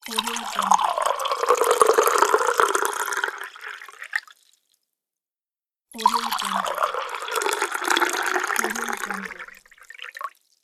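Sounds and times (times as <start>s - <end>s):
water pouring: 0.0s - 4.6s, 6.0s - 10.4s.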